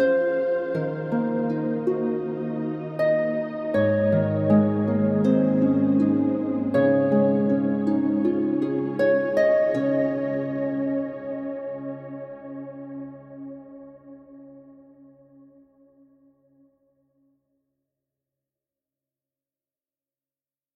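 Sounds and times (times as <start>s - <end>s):
ambient harp music: 0.0s - 15.6s.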